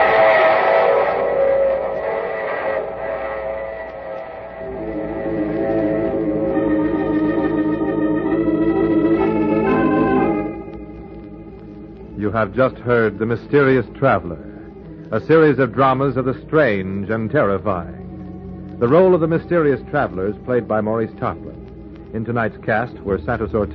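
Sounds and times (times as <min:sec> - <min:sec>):
train whistle: 0:00.0 - 0:10.5
speech: 0:12.4 - 0:14.5, 0:15.1 - 0:18.0, 0:18.8 - 0:21.5, 0:22.1 - 0:23.7.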